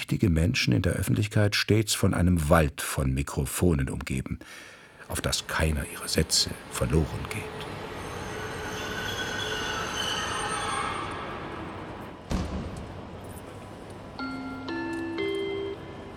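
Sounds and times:
speech: 0.1 - 7.9
train arriving at platform 13 of Berlin Hauptbahnhof: 5.0 - 16.1
high steady squealing train brakes: 6.3 - 12.3.

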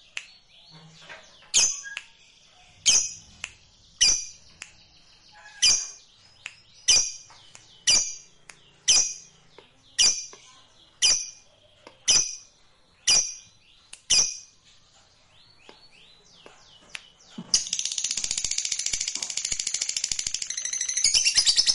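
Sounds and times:
lovebird chirping and trilling: 0.0 - 14.7, 15.3 - 21.7.

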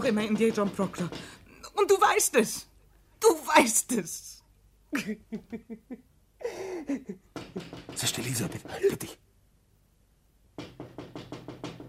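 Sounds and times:
knocking on a window: 0.0 - 1.4, 7.3 - 9.1, 10.5 - 11.8
speech: 0.0 - 9.2.

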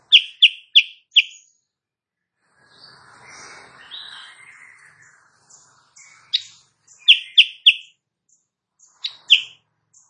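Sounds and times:
Sooty-headed bulbul singing in the morning: 0.0 - 1.6, 4.0 - 10.0.

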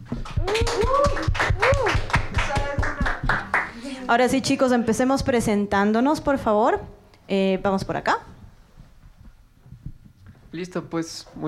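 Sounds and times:
audience applause: 0.2 - 3.8
speech: 4.1 - 8.3, 10.5 - 11.4.

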